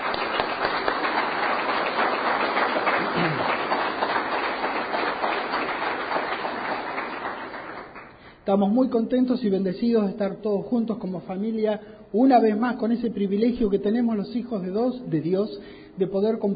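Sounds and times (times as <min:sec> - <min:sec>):
audience applause: 0:00.0 - 0:08.2
speech: 0:08.5 - 0:16.5.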